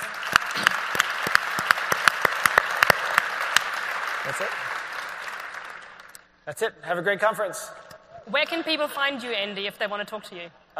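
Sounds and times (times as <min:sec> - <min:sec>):
audience applause: 0:00.0 - 0:06.2
speech: 0:04.3 - 0:04.7, 0:06.4 - 0:10.7.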